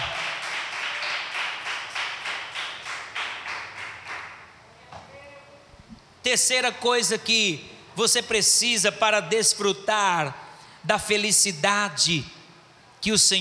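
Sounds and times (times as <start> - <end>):
rhythmic audience clapping: 0.0 - 4.6
speech: 6.3 - 12.4, 13.0 - 13.3.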